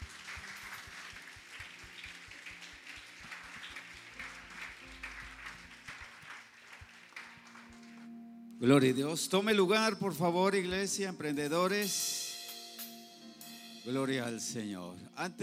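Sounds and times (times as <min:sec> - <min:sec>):
audience applauding: 0:00.0 - 0:08.2
speech: 0:08.6 - 0:12.2, 0:13.8 - 0:15.4.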